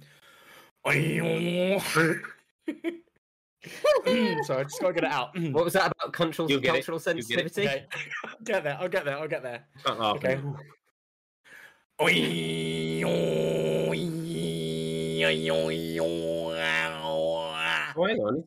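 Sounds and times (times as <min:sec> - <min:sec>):
person attempting Tuvan throat singing: 0:00.9 - 0:02.3, 0:12.0 - 0:18.0
speech: 0:00.9 - 0:10.8, 0:12.0 - 0:14.3, 0:15.2 - 0:17.0, 0:18.0 - 0:18.4
laughter: 0:03.6 - 0:05.1.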